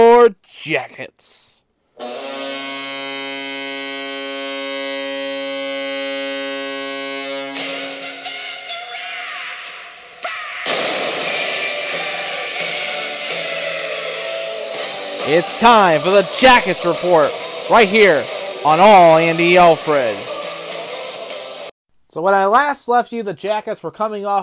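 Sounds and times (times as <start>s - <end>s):
speech: 0.2s - 1.4s, 2.0s - 2.7s, 15.3s - 20.3s, 22.1s - 24.4s
cannon firing sound effect: 10.7s - 11.5s.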